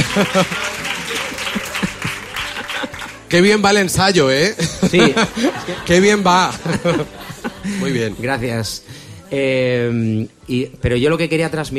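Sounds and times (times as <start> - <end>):
laughter: 0.0 - 3.3, 4.5 - 8.3
audience applause: 0.0 - 3.4
speech: 0.2 - 0.8, 3.3 - 11.7.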